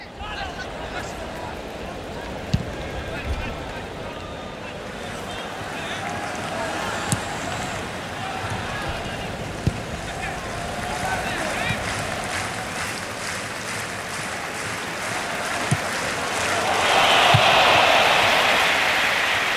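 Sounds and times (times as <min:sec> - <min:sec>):
football match crowd roar and chatter: 0:00.0 - 0:19.5
football kick thuds: 0:08.5 - 0:10.0.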